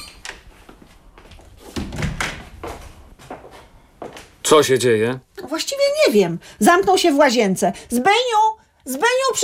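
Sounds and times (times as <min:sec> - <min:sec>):
door opening: 0:00.0 - 0:00.5, 0:01.6 - 0:03.0
speech: 0:04.5 - 0:09.4.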